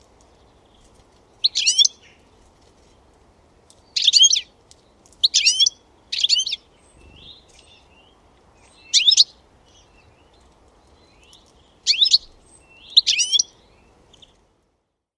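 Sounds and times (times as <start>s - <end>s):
bird twittering: 1.4s - 2.1s, 5.2s - 10.0s, 11.1s - 14.4s.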